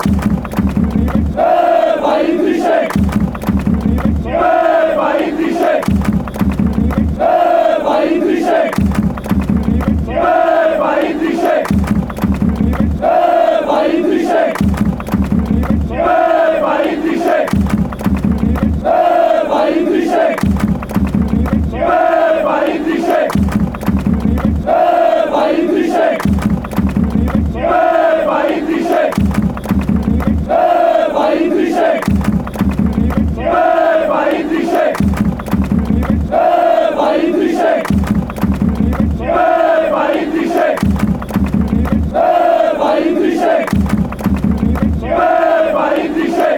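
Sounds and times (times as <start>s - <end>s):
fans chanting: 0.0s - 46.5s.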